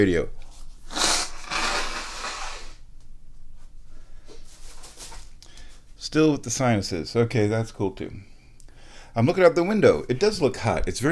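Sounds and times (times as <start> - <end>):
speech: 0.0 - 1.0, 6.1 - 8.3, 9.2 - 11.0
person blowing nose: 0.8 - 2.8.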